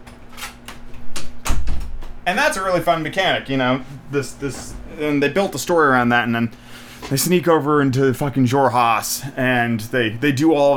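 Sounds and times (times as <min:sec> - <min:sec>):
door closing: 0:00.4 - 0:02.2
speech: 0:02.3 - 0:10.7.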